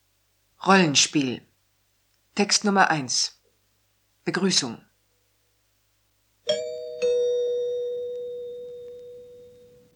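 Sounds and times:
speech: 0.7 - 1.5, 2.4 - 3.4, 4.2 - 4.9
doorbell ding-dong: 6.5 - 9.9.

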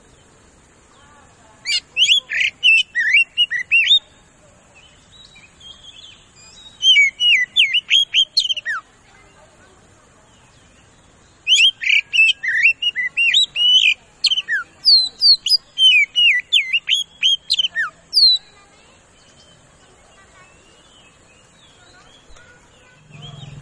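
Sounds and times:
Oriental magpie-robin singing fast loud whistled lure song: 1.6 - 4.0, 5.3 - 8.8, 11.4 - 18.5.

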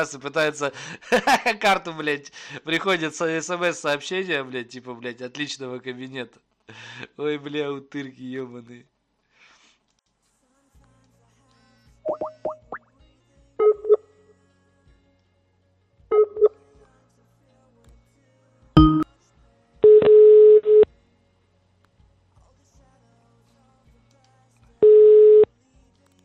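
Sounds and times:
speech: 0.0 - 8.9
laughter: 0.8 - 1.8
busy-signal beeps: 13.6 - 14.0, 16.1 - 16.6, 18.8 - 19.1, 19.8 - 20.9, 24.8 - 25.5
phone keypad tones: 13.6 - 14.0, 18.8 - 19.0.

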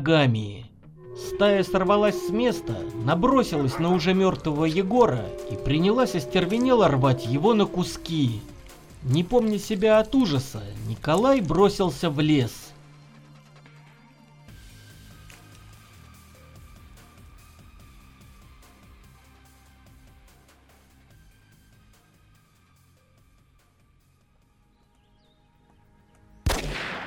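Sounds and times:
speech: 0.0 - 0.6, 1.2 - 12.6
gunshots fired into the air: 26.5 - 27.0.

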